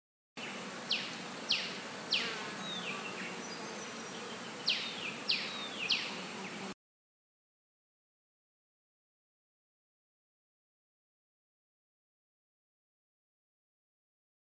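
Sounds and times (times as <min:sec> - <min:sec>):
bird: 0:00.4 - 0:06.7.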